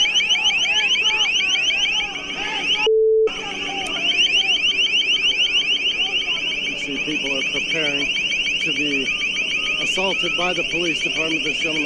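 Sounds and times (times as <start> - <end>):
ear-piercing crowd control sound device: 0.0 - 11.8
speech: 10.2 - 11.8.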